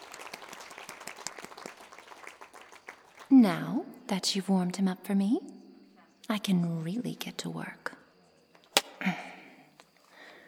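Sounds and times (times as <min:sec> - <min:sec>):
audience round of applause: 0:00.0 - 0:03.3
speech: 0:03.3 - 0:05.6, 0:06.3 - 0:08.0, 0:09.0 - 0:09.2.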